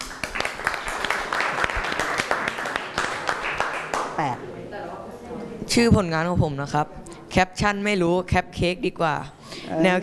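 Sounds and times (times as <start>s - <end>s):
audience applause: 0.0s - 4.1s
speech: 4.2s - 4.5s, 5.7s - 10.0s.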